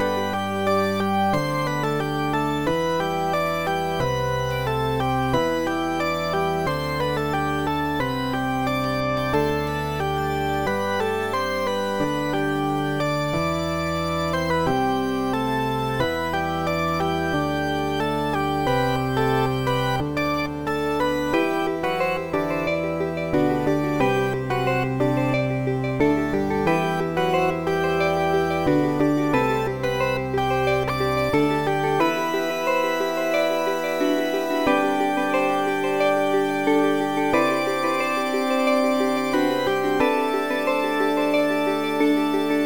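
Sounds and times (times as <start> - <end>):
church theme music: 0.0 - 42.6.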